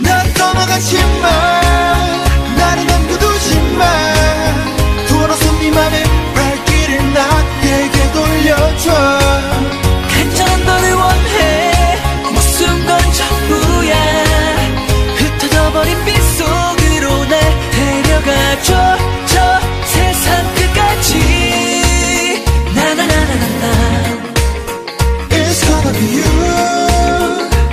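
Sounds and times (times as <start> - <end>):
chorus singing: 0.3 - 27.7.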